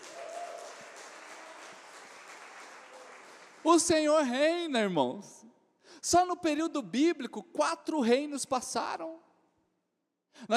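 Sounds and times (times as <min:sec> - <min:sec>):
audience applause: 0:00.0 - 0:04.0
speech: 0:03.6 - 0:09.2, 0:10.4 - 0:10.5.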